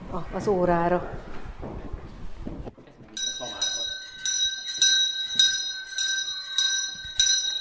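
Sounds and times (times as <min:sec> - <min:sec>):
speech: 0:00.1 - 0:01.4
school bell ringing for class: 0:03.2 - 0:07.5.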